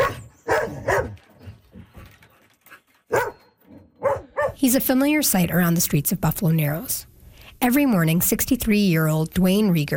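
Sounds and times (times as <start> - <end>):
dog barking: 0.0 - 1.2, 3.1 - 4.6
speech: 4.6 - 9.9.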